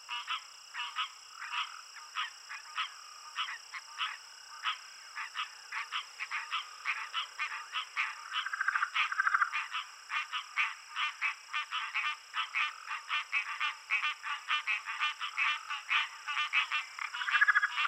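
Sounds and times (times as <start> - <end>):
insects: 0.0 - 17.8
Southern leopard frog calling: 0.1 - 17.8.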